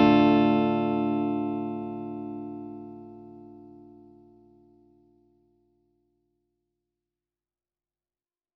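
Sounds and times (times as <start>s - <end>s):
Blackstar HT Metal 5 amplifier clean tone recorded with Shure microphone: 0.0s - 5.4s.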